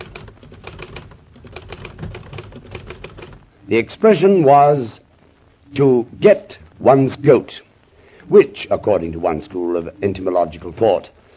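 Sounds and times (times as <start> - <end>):
typing on an Underwood manual typewriter: 0.0 - 3.4
speech: 3.7 - 5.0, 5.7 - 7.7, 8.3 - 11.2.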